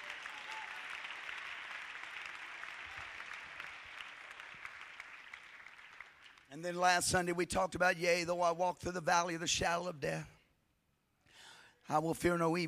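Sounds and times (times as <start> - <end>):
hands clapping to the Lord: 0.0 - 6.7
speech: 6.5 - 10.3, 11.9 - 12.6.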